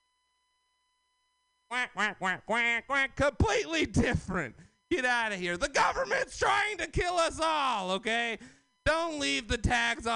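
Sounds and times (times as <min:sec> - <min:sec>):
human voice imitating duck quacks: 0:01.7 - 0:03.2
speech: 0:01.7 - 0:10.1.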